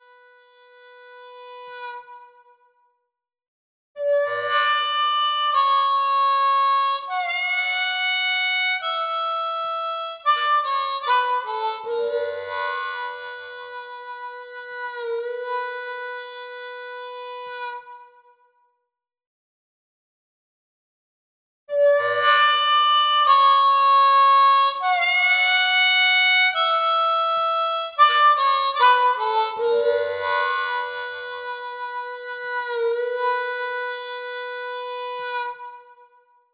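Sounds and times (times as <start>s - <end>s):
harp: 4.0s - 18.1s, 21.7s - 36.1s.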